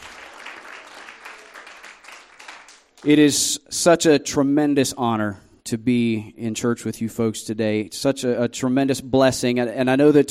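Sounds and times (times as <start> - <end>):
applause and hand clapping from a church congregation: 0.0 - 3.3
speech: 3.0 - 10.2.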